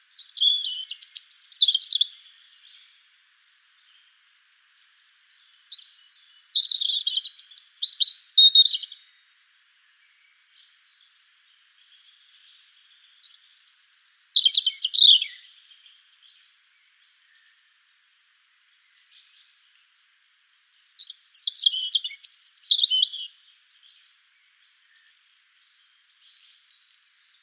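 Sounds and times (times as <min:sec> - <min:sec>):
European robin Erithacus rubecula singing: 0:00.0 - 0:09.2, 0:10.0 - 0:17.6, 0:20.7 - 0:27.4.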